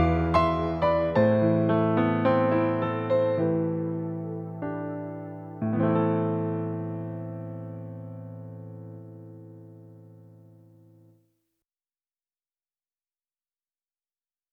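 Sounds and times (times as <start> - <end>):
piano intro: 0.0 - 11.1.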